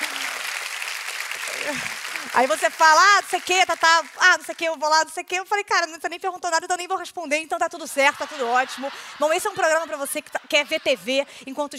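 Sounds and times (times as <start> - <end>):
audience applauding: 0.0 - 4.8
speech: 1.6 - 11.7
laughter: 7.8 - 11.7.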